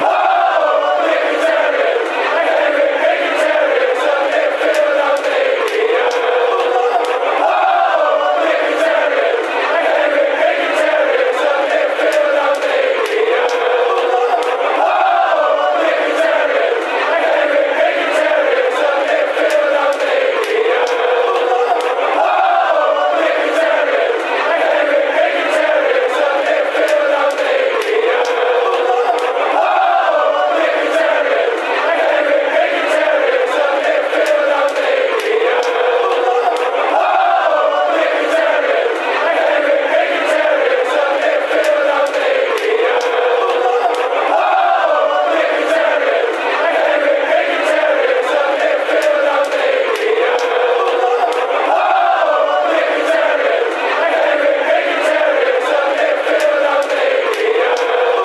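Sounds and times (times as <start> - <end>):
fans chanting: 0.0 - 58.2.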